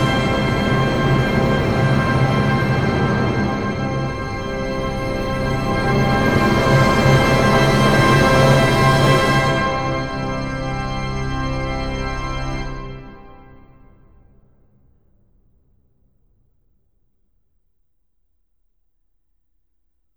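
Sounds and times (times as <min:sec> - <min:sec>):
tone poem for orchestra: 0:00.0 - 0:12.9.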